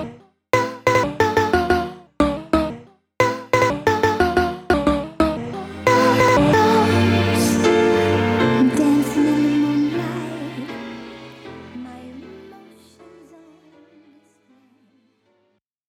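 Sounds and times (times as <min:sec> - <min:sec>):
synth CV to pitch sample: 0:00.6 - 0:10.0.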